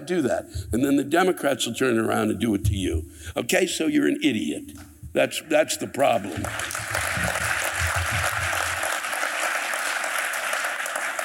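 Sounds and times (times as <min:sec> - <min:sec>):
speech: 0:00.1 - 0:07.3
crowd applause: 0:06.3 - 0:11.2.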